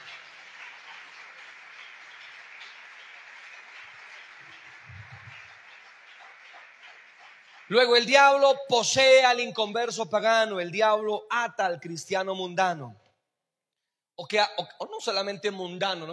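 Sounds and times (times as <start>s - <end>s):
audience applause: 0.0s - 8.5s
speech: 7.7s - 13.0s, 14.2s - 16.1s.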